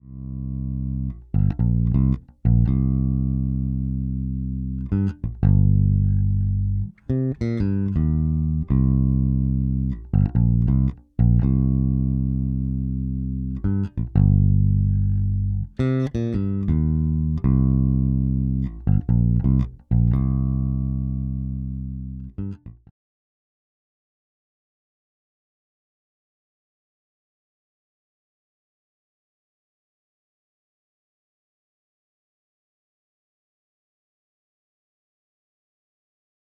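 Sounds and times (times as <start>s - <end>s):
Warwick Gnome i Pro V2 amp with jazz bass, both pickups: 0.0s - 22.9s.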